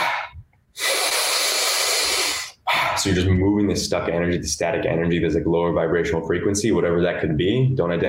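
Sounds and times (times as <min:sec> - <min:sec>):
person exhaling through the mouth in a breathing exercise: 0:00.0 - 0:03.0
speech: 0:03.0 - 0:08.0.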